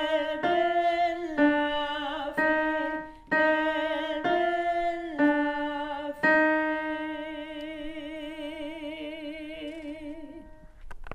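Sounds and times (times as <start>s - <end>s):
alto voice: 0.0s - 10.7s.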